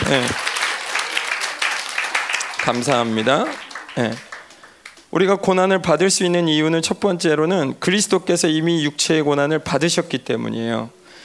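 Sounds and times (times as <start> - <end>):
crowd applause: 0.0 - 5.1
speech: 0.1 - 0.4, 2.6 - 4.3, 5.1 - 11.0.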